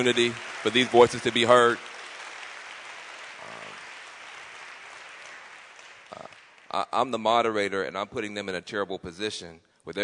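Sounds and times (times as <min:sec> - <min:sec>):
speech: 0:00.0 - 0:01.9, 0:06.8 - 0:10.0
audience applause: 0:00.0 - 0:06.7.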